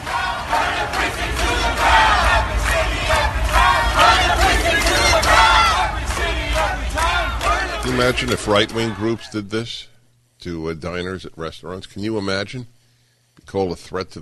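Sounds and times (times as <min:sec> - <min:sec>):
protesters shouting and screaming: 0:00.0 - 0:09.3
speech: 0:08.0 - 0:12.8, 0:13.4 - 0:14.2.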